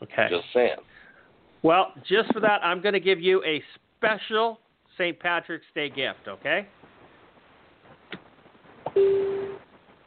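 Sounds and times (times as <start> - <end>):
speech: 0.2 - 1.0, 1.6 - 6.8, 9.0 - 9.3
electronic beep: 9.0 - 9.6.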